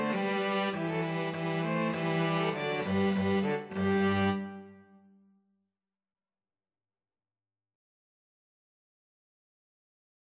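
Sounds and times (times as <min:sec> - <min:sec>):
Slavonic trio playing: 0:00.0 - 0:04.8.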